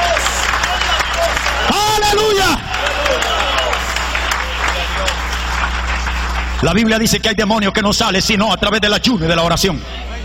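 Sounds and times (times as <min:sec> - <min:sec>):
audience applauding: 0:00.0 - 0:07.4
speech: 0:06.6 - 0:10.1.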